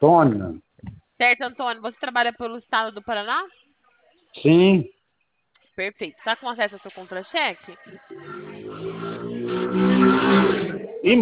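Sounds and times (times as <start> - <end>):
speech: 0.0 - 0.6, 1.2 - 3.7, 4.4 - 5.0, 5.8 - 8.7, 11.0 - 11.2
motorcycle passing by heard through a telephone line: 7.8 - 11.2.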